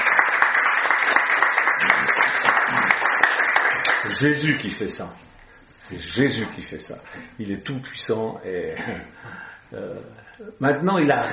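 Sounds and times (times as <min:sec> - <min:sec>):
crowd applauding: 0:00.0 - 0:04.8
speech: 0:04.2 - 0:05.3, 0:05.9 - 0:11.3.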